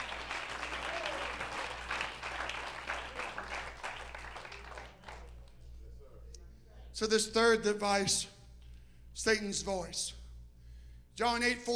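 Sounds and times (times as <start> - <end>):
audience clapping hands: 0.0 - 5.7
speech: 7.0 - 8.4, 9.2 - 10.2, 11.2 - 11.7.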